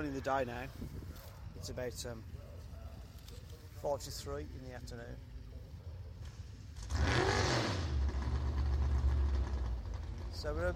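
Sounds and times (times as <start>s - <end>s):
speech: 0.0s - 0.9s, 1.6s - 2.4s, 3.8s - 5.3s, 10.4s - 10.7s
race car passing on banking: 6.8s - 10.7s.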